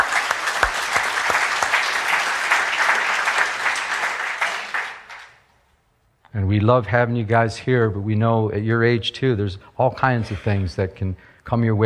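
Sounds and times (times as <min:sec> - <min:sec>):
audience applause for high schoolers: 0:00.0 - 0:05.4
speech: 0:06.3 - 0:11.8.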